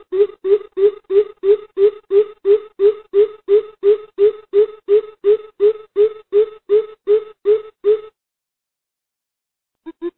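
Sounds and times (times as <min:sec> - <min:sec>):
greater coucal booming hoots: 0:00.0 - 0:08.1.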